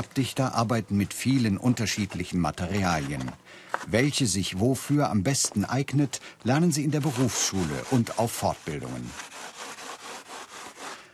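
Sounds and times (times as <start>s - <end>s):
speech: 0.0s - 9.3s
file smoothing uneven insulation material: 6.6s - 11.1s.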